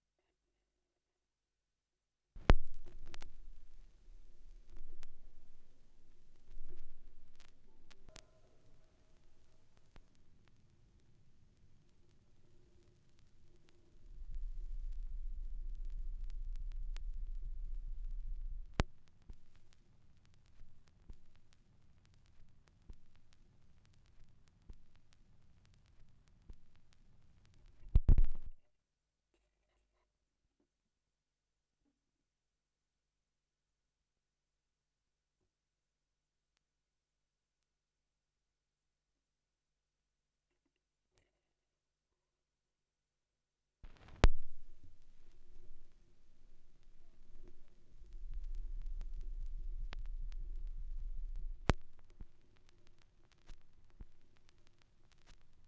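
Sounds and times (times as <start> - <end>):
vinyl record noise: 2.4 - 28.6, 43.8 - 55.6.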